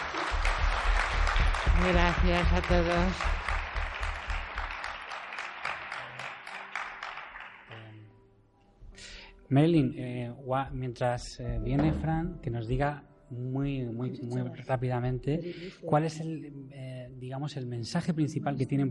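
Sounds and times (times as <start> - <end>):
audience applause: 0.0 - 7.8
speech: 1.8 - 3.4, 9.5 - 18.8.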